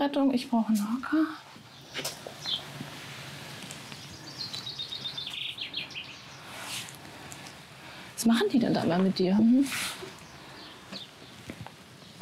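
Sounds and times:
speech: 0:00.0 - 0:02.1, 0:08.2 - 0:09.9
faint rustling: 0:00.8 - 0:12.2
swallows chirping near a nest: 0:01.7 - 0:02.8, 0:03.8 - 0:06.9, 0:10.0 - 0:12.2.

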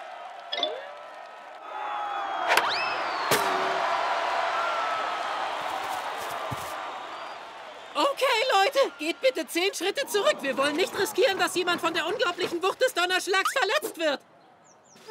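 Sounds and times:
people whooping: 0:00.0 - 0:11.1
large crowd arriving and cheering: 0:00.0 - 0:13.4
speech: 0:08.2 - 0:14.3.

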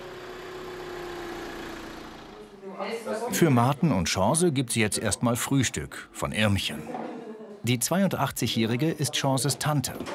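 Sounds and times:
bakery delivery van engine idling: 0:00.0 - 0:02.6
speech: 0:02.8 - 0:10.1.

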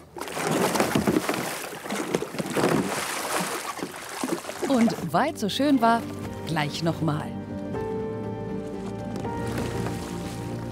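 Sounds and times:
water churning and splashing as kayak capsizes and rolls: 0:00.0 - 0:05.3, 0:08.5 - 0:10.6
speech: 0:04.7 - 0:07.3.

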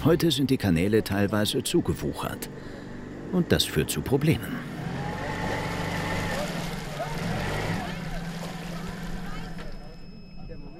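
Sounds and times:
speech: 0:00.0 - 0:04.7
boat motor running on a canal: 0:00.0 - 0:10.7
faint water sloshing: 0:04.9 - 0:10.0.

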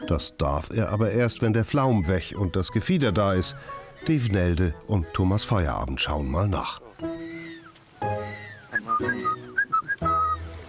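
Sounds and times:
speech: 0:00.1 - 0:06.8
person whistling to announce arrival: 0:08.3 - 0:10.5.

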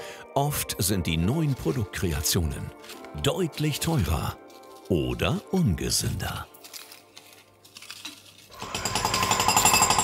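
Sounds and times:
speech: 0:00.4 - 0:06.5
construction site jackhammer-like pounding: 0:08.5 - 0:10.0.

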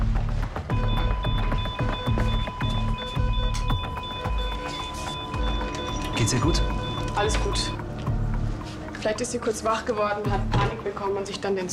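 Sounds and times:
busy rhythmic clattering noise: 0:00.2 - 0:07.8
hospital room alarm beeping: 0:00.7 - 0:08.0
speech: 0:06.3 - 0:07.8, 0:09.0 - 0:11.7.

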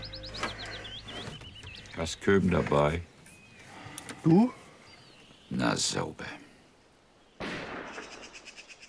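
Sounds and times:
speech: 0:02.0 - 0:03.1, 0:04.2 - 0:04.6, 0:05.5 - 0:06.4
gunfire from Klingsel: 0:07.4 - 0:08.4.

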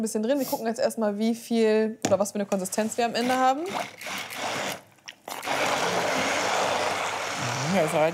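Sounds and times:
speech: 0:00.0 - 0:04.6, 0:07.7 - 0:08.1
immersion blender pureeing vegetables: 0:02.5 - 0:08.1.

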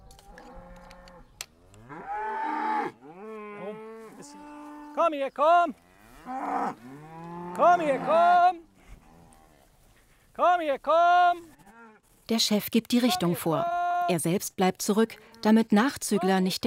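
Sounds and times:
cows mooing: 0:00.3 - 0:05.0, 0:05.8 - 0:09.6
speech: 0:05.0 - 0:07.0, 0:07.6 - 0:08.6, 0:10.4 - 0:11.5, 0:12.3 - 0:16.6.

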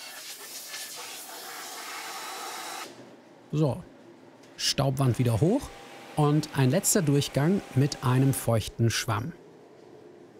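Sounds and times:
compressed air blowing plaster dust off a toilet bowl: 0:00.0 - 0:02.9
speech: 0:03.5 - 0:03.9, 0:04.6 - 0:09.4.

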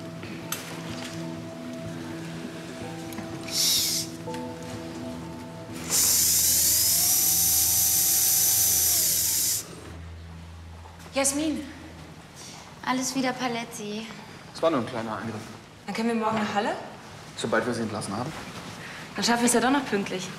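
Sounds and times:
operating-room equipment humming: 0:00.0 - 0:12.8
surgical drill boring into skull bone: 0:05.7 - 0:10.0
speech: 0:11.2 - 0:11.8, 0:12.9 - 0:18.5, 0:19.2 - 0:20.3.

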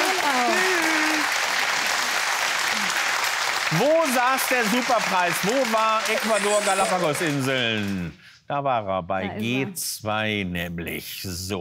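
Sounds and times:
studio audience applause: 0:00.0 - 0:08.2
speech: 0:03.7 - 0:11.5.

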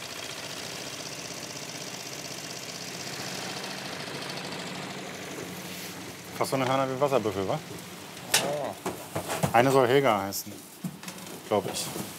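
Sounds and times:
old ferry engine running: 0:00.0 - 0:08.8
speech: 0:06.4 - 0:08.0, 0:09.5 - 0:10.7, 0:11.5 - 0:12.1.

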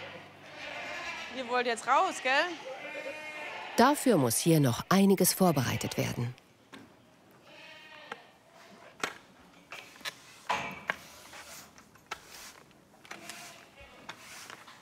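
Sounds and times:
goats bleating in a barn: 0:00.0 - 0:04.0, 0:05.4 - 0:06.3, 0:07.4 - 0:08.4
speech: 0:01.4 - 0:02.8, 0:03.8 - 0:06.4.

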